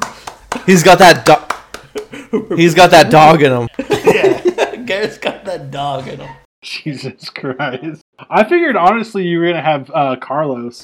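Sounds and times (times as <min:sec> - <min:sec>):
hand claps: 0:00.0 - 0:02.2
speech: 0:00.7 - 0:01.4, 0:02.3 - 0:04.2, 0:04.9 - 0:10.8
laughter: 0:01.8 - 0:06.5.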